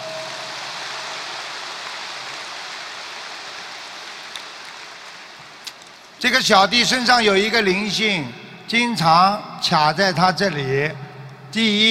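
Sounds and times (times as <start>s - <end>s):
applause: 0.0s - 6.2s
speech: 6.2s - 11.9s.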